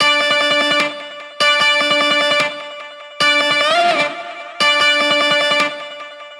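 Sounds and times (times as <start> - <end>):
clean guitar in D at 150 BPM: 0.0 - 6.3.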